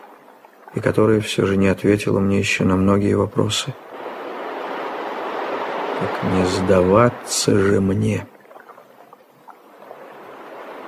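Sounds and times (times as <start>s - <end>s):
speech: 0.7s - 3.9s, 6.2s - 8.3s
ocean waves crashing: 3.7s - 10.8s.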